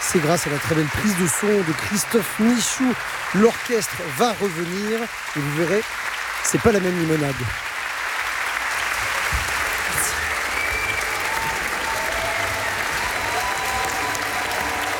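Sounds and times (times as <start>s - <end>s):
audience applauding musicians: 0.0s - 14.9s
speech: 0.1s - 7.7s.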